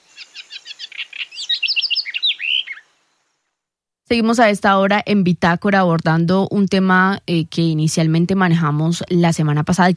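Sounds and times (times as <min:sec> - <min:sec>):
house wren song: 0:00.0 - 0:03.6
speech: 0:04.1 - 0:09.9.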